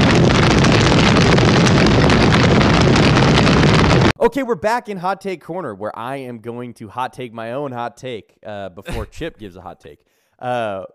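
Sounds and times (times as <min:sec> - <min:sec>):
fire sound effect roaring: 0:00.0 - 0:04.2
speech: 0:04.3 - 0:10.9.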